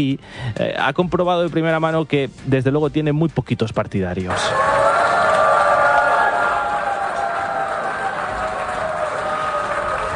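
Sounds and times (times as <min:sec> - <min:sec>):
speech: 0:00.0 - 0:04.7
assembly plenary crowd booing: 0:04.3 - 0:10.1.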